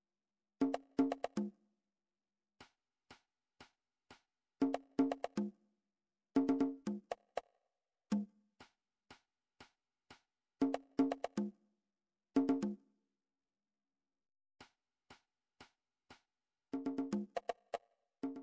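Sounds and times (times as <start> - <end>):
conga drum: 0.6 - 1.6, 4.6 - 5.6, 6.4 - 7.5, 10.6 - 11.6, 12.4 - 12.8, 16.8 - 18.4.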